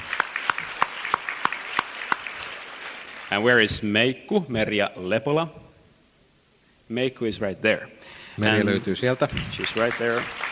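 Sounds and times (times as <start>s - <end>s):
audience applause: 0.0s - 3.5s, 8.4s - 10.5s
speech: 3.3s - 5.6s, 6.9s - 10.5s.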